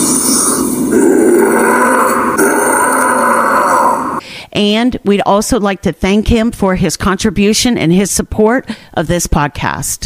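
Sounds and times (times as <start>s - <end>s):
Bigfoot howl: 0.0s - 4.2s
speech: 4.6s - 10.0s.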